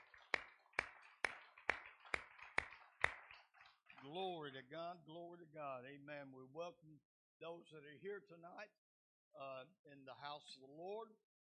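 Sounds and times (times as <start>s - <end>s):
audience hand clapping: 0.0s - 4.6s
speech: 4.0s - 11.3s.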